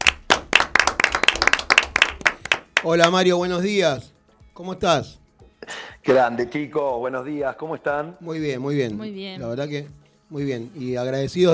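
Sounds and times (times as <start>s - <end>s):
applause: 0.0s - 3.2s
speech: 2.8s - 5.2s, 6.0s - 11.5s.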